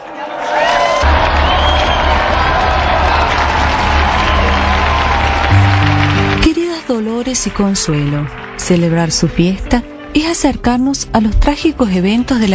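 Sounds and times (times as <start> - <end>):
crowd cheering and whooping: 0.0 - 6.5
crowd applauding: 0.0 - 9.7
speech: 7.2 - 12.5.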